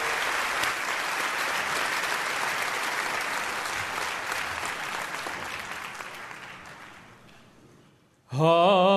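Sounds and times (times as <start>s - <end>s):
audience applause welcoming a singer at a worship gathering: 0.0s - 7.5s
speech: 8.4s - 8.8s.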